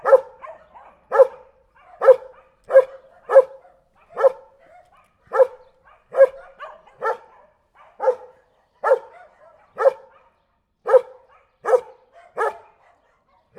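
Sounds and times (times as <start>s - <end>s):
German Shepherd watchdog giving friendly yelping barks: 0.0s - 10.2s, 10.9s - 12.8s.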